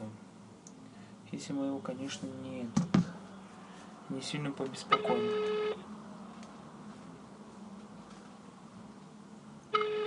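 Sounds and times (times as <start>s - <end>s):
speech: 1.4s - 2.9s, 4.1s - 5.7s
telephone ringback tone: 5.0s - 5.8s, 9.7s - 10.0s.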